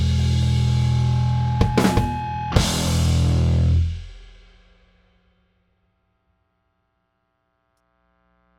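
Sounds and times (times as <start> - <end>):
bass: 0.0 - 4.4
drums: 0.0 - 5.4.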